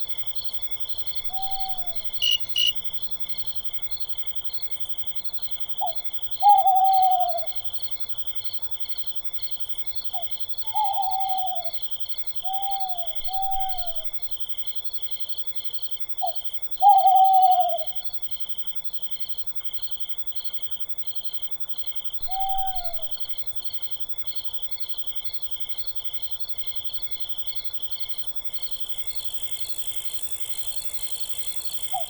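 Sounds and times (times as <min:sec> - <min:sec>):
owl in a forest: 0:01.2 - 0:02.8, 0:05.8 - 0:07.6, 0:10.7 - 0:11.8, 0:12.4 - 0:14.2, 0:16.2 - 0:18.0, 0:22.2 - 0:23.3, 0:31.6 - 0:32.0.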